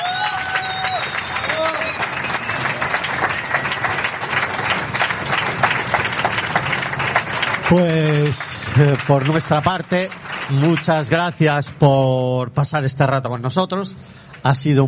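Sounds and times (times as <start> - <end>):
audience applause: 0.0 - 11.8
whistle-like tones: 0.6 - 2.8
speech: 7.7 - 14.8.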